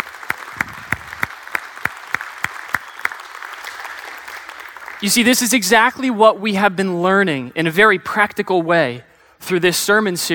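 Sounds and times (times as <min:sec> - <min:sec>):
audience applause: 0:00.0 - 0:05.0
speech: 0:05.0 - 0:10.3.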